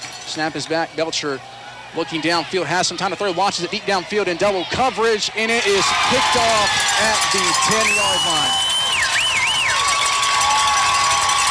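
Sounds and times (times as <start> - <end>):
speech: 0.3 - 8.6
stadium crowd cheering: 0.5 - 11.4
shrill wavering whistle: 7.6 - 11.4.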